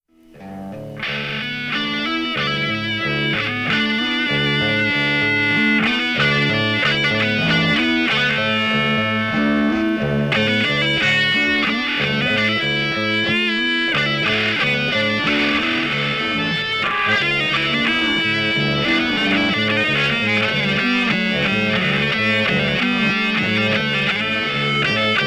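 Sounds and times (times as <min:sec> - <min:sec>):
guitars: 0:00.1 - 0:25.2.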